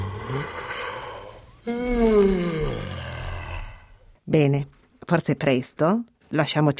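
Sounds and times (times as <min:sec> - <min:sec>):
yawn: 0:00.0 - 0:04.0
speech: 0:01.6 - 0:02.6, 0:04.3 - 0:06.7.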